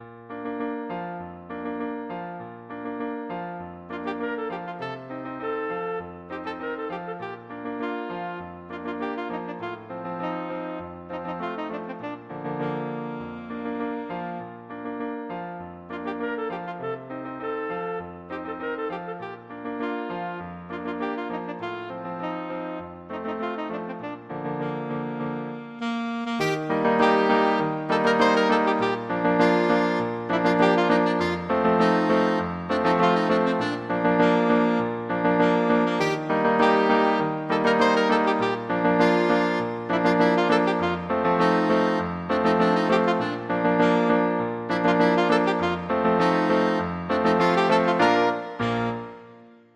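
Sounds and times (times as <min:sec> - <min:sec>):
saxophone: 0:03.2 - 0:49.7.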